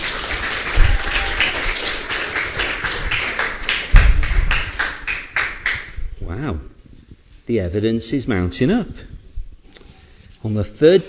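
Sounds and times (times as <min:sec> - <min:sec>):
audience clapping: 0:00.0 - 0:06.0
speech: 0:07.5 - 0:09.2, 0:10.4 - 0:11.0.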